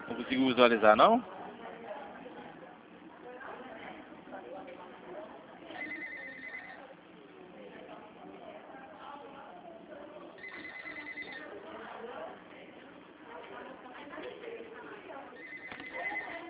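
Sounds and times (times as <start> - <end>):
speech: 0.1 - 1.4
telephone bell ringing: 5.7 - 6.8, 10.4 - 11.5, 15.4 - 16.4.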